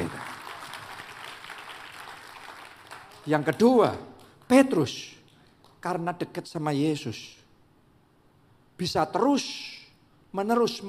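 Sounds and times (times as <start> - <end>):
audience applause: 0.0 - 4.0
speech: 3.2 - 5.2, 5.8 - 7.4, 8.8 - 10.8.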